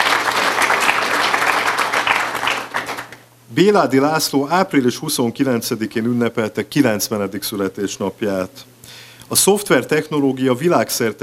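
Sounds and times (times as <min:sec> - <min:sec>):
audience applause: 0:00.0 - 0:03.2
speech: 0:03.6 - 0:08.7, 0:09.3 - 0:11.2.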